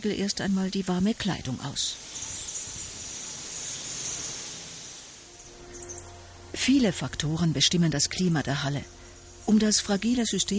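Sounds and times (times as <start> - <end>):
speech: 0.0 - 2.3, 6.6 - 10.5
high-pitched hiss in an indoor rainforest hall: 0.0 - 10.5.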